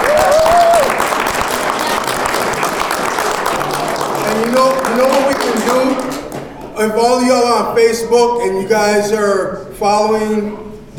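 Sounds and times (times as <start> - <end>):
high whoop: 0.0 - 1.0
audience round of applause: 0.0 - 6.7
speech: 4.6 - 6.2, 6.8 - 10.9.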